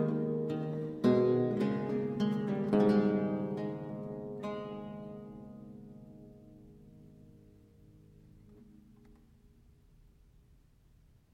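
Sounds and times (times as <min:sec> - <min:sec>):
lute playing a minuet in A minor: 0:00.0 - 0:06.5.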